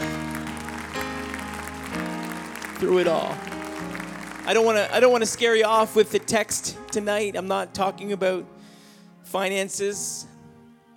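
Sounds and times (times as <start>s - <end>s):
audience clapping: 0.0s - 7.6s
speech: 2.8s - 3.6s, 4.5s - 8.6s, 9.2s - 10.3s.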